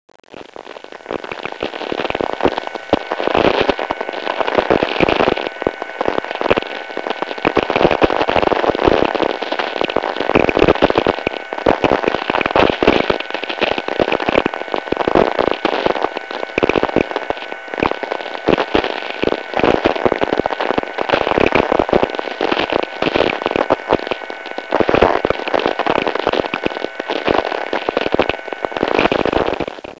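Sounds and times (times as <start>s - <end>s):
low power transmission: 0.2s - 29.9s.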